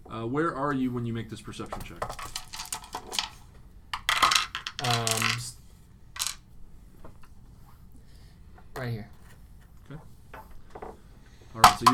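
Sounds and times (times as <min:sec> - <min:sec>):
speech: 0:00.2 - 0:02.4
die rattling on a hard surface: 0:01.8 - 0:03.4, 0:04.0 - 0:05.5, 0:06.2 - 0:06.4, 0:11.6 - 0:11.9.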